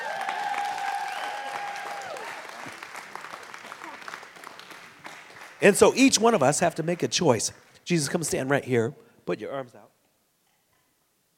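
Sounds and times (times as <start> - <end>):
audience applause: 0.0 - 7.5
speech: 5.6 - 10.0.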